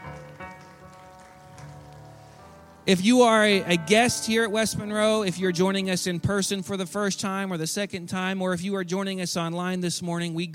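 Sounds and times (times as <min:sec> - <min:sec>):
crowd clapping: 0:00.0 - 0:02.8
sustained keyboard or organ tones: 0:02.9 - 0:08.6
speech: 0:02.9 - 0:10.5.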